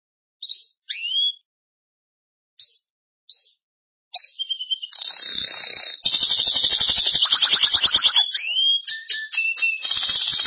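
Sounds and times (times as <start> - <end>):
Belgian canary singing: 0.4 - 1.4, 2.6 - 3.6, 4.2 - 10.4.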